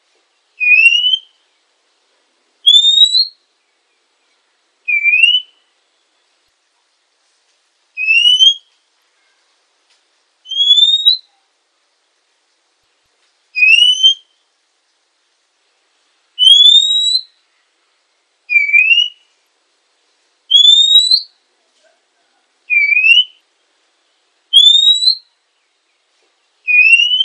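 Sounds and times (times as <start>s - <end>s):
female Oriental magpie-robin whistled notes: 0.6s - 1.4s, 2.6s - 3.4s, 4.9s - 5.6s, 8.0s - 9.4s, 10.4s - 11.4s, 13.6s - 14.4s, 16.4s - 17.4s, 18.5s - 19.3s, 20.5s - 21.3s, 22.7s - 23.4s, 24.5s - 25.3s, 26.7s - 27.2s.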